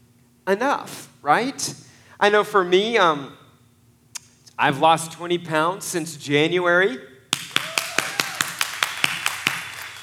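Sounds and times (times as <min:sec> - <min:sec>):
speech: 0:00.5 - 0:03.4, 0:04.6 - 0:07.1
applause: 0:07.3 - 0:10.0.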